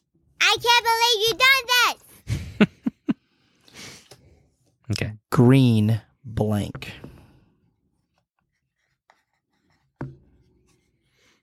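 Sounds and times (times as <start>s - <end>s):
speech: 0.5s - 2.0s, 4.9s - 7.1s
pen scratching on paper as players write answers in a word game: 8.5s - 11.2s.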